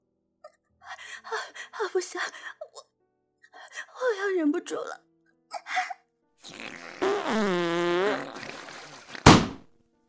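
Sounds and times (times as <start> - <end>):
speech: 1.3 - 2.6, 4.0 - 5.1
fart: 6.4 - 9.7.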